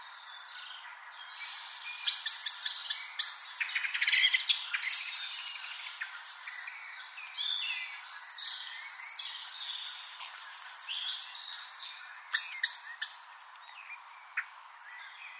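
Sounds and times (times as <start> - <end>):
Common blackbird Turdus merula sharp chink calls: 1.3 - 14.5.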